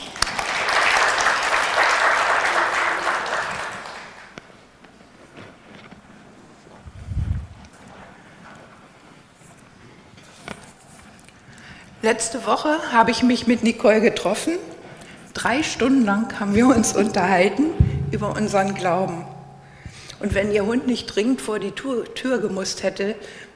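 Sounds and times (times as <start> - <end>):
audience applause: 0.0 - 4.4
speech: 12.0 - 14.7, 15.4 - 19.3, 20.2 - 23.5.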